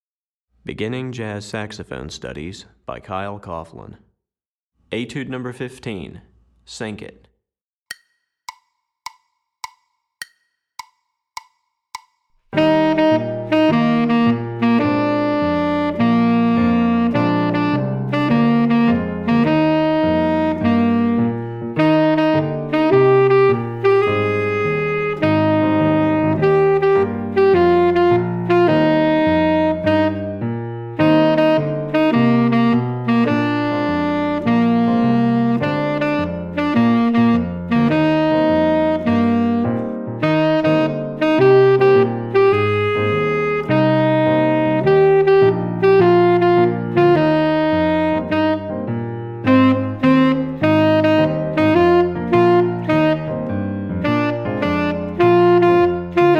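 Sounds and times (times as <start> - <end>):
tenor saxophone etude: 12.6 - 56.3.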